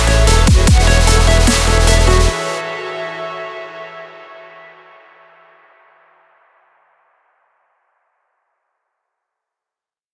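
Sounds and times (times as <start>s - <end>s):
powerful intense dubstep music: 0.0s - 3.4s.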